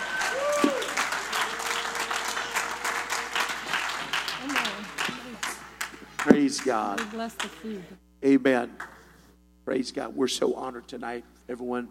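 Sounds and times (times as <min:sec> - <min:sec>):
church congregation applauding: 0:00.0 - 0:07.7
speech: 0:06.3 - 0:09.0, 0:09.6 - 0:11.9.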